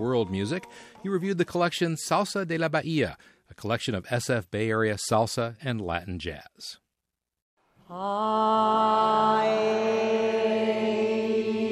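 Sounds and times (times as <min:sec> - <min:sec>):
speech: 0:00.0 - 0:06.8, 0:07.9 - 0:11.7
choir warming up: 0:07.9 - 0:11.7.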